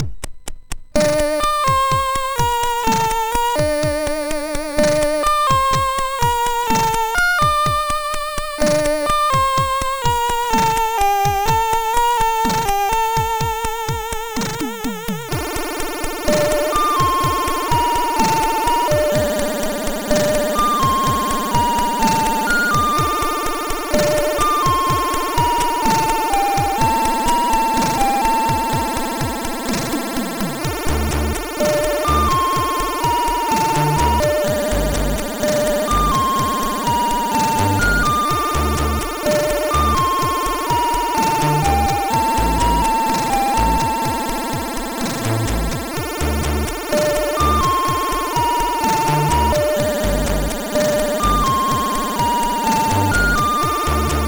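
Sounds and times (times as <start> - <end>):
country chiptune music on SID MOS6581R4 chip: 0.0 - 54.2.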